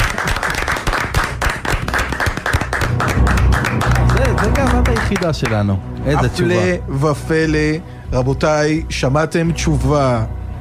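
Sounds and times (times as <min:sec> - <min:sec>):
audience applauding at a Torah quiz contest: 0:00.0 - 0:05.8
speech: 0:05.1 - 0:10.4.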